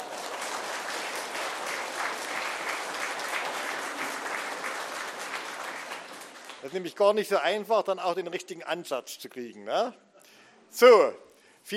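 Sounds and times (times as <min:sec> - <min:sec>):
crowd clapping: 0:00.0 - 0:07.3
speech: 0:06.6 - 0:10.1, 0:10.7 - 0:11.7.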